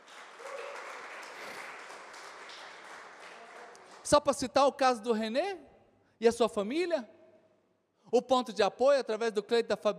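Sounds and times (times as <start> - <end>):
audience applause: 0.0 - 4.1
speech: 4.1 - 7.2, 8.1 - 9.9.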